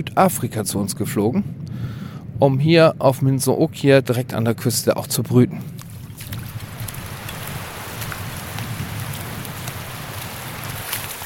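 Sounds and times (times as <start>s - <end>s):
speech: 0.0s - 5.8s
low rumble: 0.0s - 11.2s
gentle waves lapping against sand: 5.6s - 11.2s.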